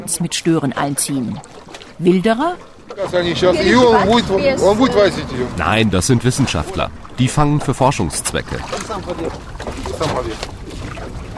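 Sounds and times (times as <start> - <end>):
boat moving on water: 0.0 - 11.3
speech: 0.1 - 10.6.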